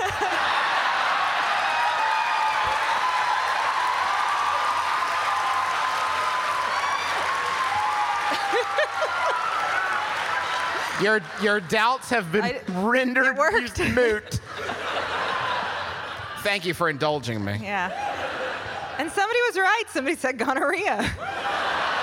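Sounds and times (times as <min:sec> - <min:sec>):
laughter: 0:00.0 - 0:01.3, 0:07.9 - 0:17.1, 0:17.9 - 0:19.5, 0:20.6 - 0:22.0
audience clapping along: 0:00.0 - 0:12.8
speech: 0:11.0 - 0:14.8, 0:16.4 - 0:18.0, 0:19.0 - 0:21.6.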